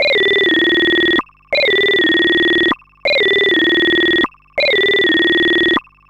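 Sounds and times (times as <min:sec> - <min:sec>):
ring modulator loop: 0:00.0 - 0:06.0.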